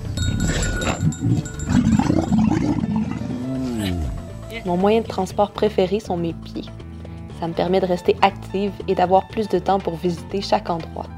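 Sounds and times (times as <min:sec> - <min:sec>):
dromedary camel grunting: 0:00.2 - 0:04.5
speech: 0:01.1 - 0:01.8, 0:04.6 - 0:06.8, 0:07.4 - 0:11.1.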